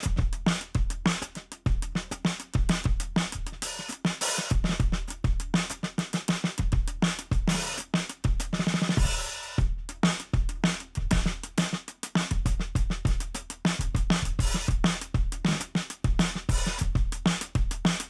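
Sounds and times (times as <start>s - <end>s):
drums at 100 bpm: 0.0s - 18.0s.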